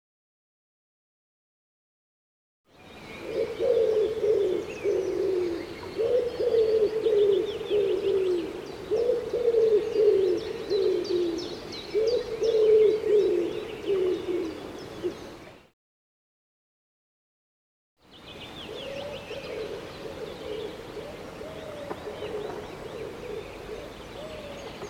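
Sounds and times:
small birds twittering: 2.7 - 15.7, 18.0 - 24.8
Common Wood Pigeon coos: 3.2 - 15.6, 18.7 - 24.7.

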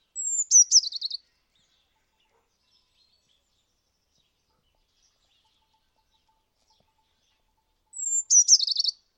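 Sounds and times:
bird call with thin whistle and buzzy descending trill: 0.2 - 1.2, 7.9 - 9.0.

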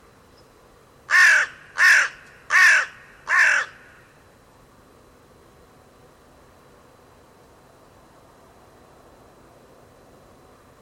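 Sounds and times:
bird coarse calls: 1.1 - 4.1.

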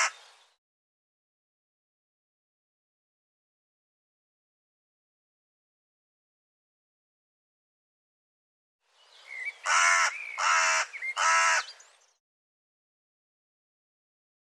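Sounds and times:
bird calling with coarse rasping caws: 9.3 - 11.8.

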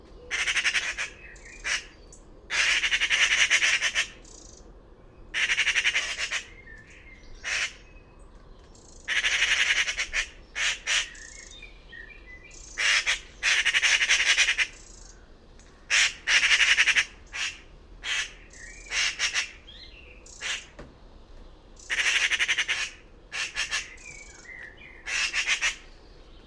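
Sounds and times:
bird squawking: 0.3 - 4.6, 5.4 - 6.5, 9.1 - 11.6, 12.6 - 15.2, 15.9 - 20.8, 21.8 - 25.9.

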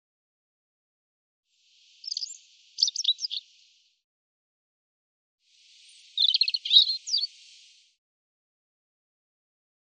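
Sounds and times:
European robin singing: 2.0 - 3.6, 5.8 - 7.7.

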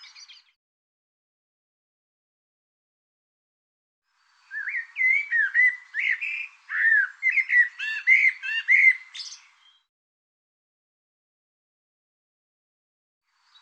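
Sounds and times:
bird song: 0.0 - 0.6, 4.1 - 9.9, 13.2 - 13.6.

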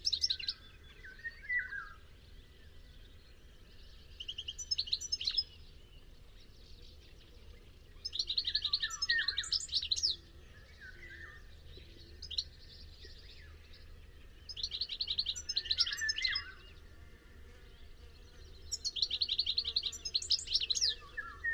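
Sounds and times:
bird chirping with high thin rapid notes: 0.0 - 21.5.

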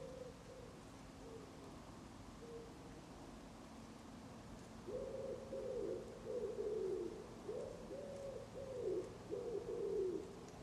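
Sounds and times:
bird giving low hoarse cooing notes: 0.0 - 1.5, 2.4 - 2.7, 4.9 - 10.6.

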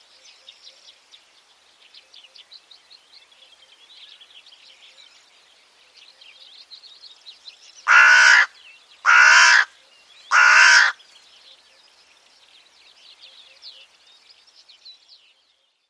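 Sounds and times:
small birds twittering: 0.0 - 15.8
bird cawing: 7.9 - 8.5, 9.1 - 9.7, 10.3 - 11.0.

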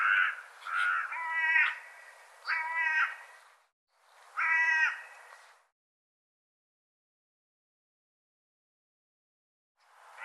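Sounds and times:
bird calling with rough grating caws: 0.0 - 3.4, 4.4 - 5.5.

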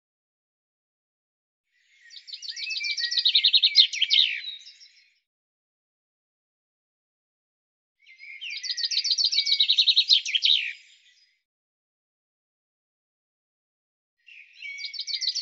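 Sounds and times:
bird song: 1.7 - 5.3, 8.0 - 11.5, 14.2 - 15.3.

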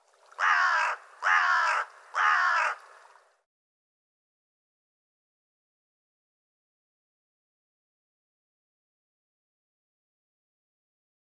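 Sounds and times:
bird giving a harsh raspy caw: 0.4 - 2.9.

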